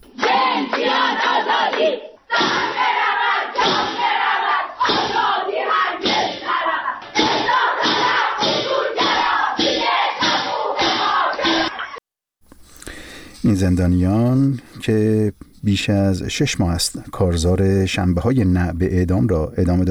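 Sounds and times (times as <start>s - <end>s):
prisoners chanting protest slogans against executions at a prison rally: 0.1s - 12.0s
speech: 13.5s - 19.8s.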